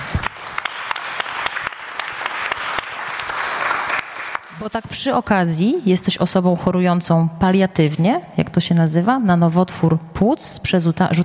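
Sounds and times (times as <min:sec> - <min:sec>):
audience applause: 0:00.0 - 0:04.7
speech: 0:04.6 - 0:11.2.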